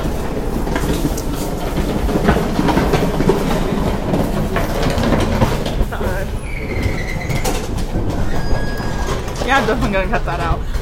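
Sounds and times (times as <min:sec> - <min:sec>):
trash can dragged across ground: 0:00.0 - 0:10.8
short high squeal: 0:06.4 - 0:07.5
speech: 0:09.6 - 0:10.8.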